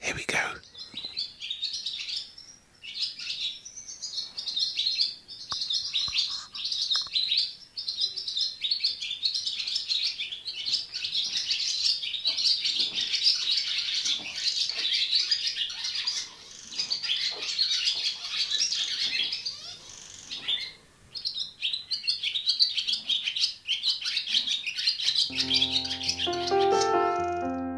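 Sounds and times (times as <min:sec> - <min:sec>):
swallow dawn chorus: 0:00.1 - 0:27.6
swallow beak clicking: 0:25.6 - 0:27.6.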